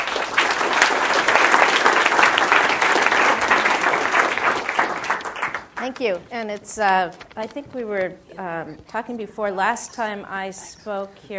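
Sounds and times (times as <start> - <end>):
audience applause welcoming a speaker to a Stanford talk: 0.0 - 7.2
speech: 5.9 - 11.3.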